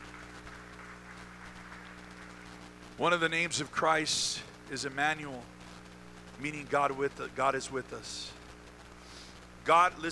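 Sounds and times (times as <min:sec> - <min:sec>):
audience hand clapping: 0:00.0 - 0:02.8
speech: 0:03.0 - 0:05.6, 0:06.4 - 0:08.4, 0:09.6 - 0:10.1.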